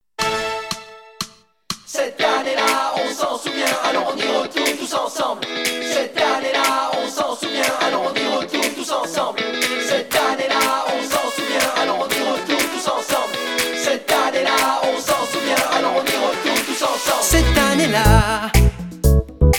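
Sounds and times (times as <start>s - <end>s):
choir singing: 1.9s - 18.6s.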